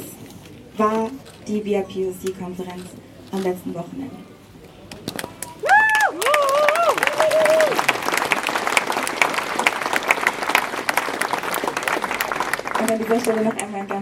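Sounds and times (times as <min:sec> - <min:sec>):
speech: 0:00.8 - 0:04.3, 0:12.9 - 0:13.9
audience applause: 0:05.1 - 0:13.7.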